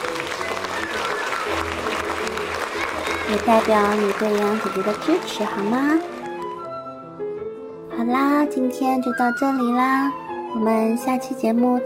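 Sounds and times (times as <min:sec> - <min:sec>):
hands clapping: 0:00.0 - 0:06.6
speech: 0:03.3 - 0:06.1, 0:08.1 - 0:11.8.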